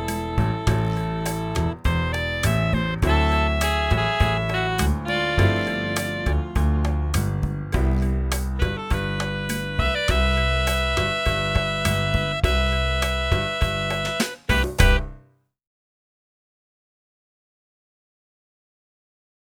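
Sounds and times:
sunny saxophone: 0.0s - 15.2s.

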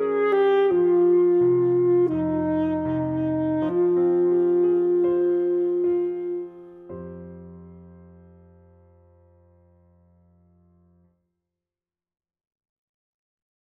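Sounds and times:
full saxophone concert piece: 0.0s - 7.0s.

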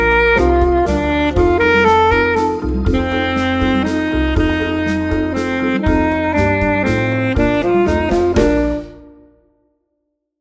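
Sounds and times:
two student saxophones playing a duo: 0.0s - 9.4s.

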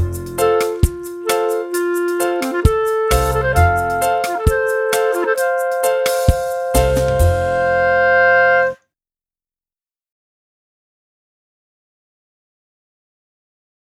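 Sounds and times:
clarinet: 0.0s - 8.8s.

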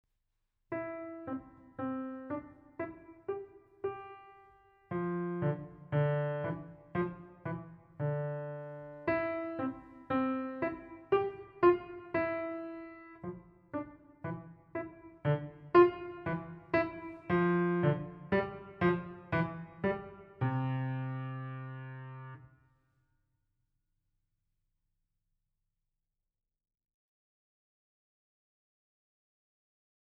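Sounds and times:
piano: 0.7s - 22.6s.

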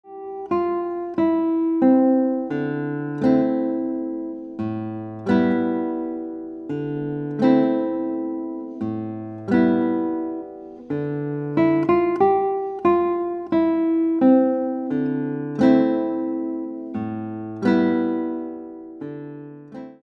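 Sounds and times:
guitar: 0.0s - 20.0s.

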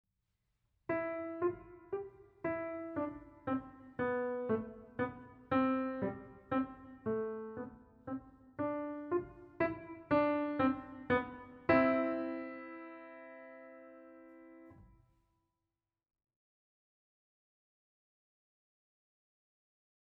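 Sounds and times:
piano: 0.8s - 15.0s.

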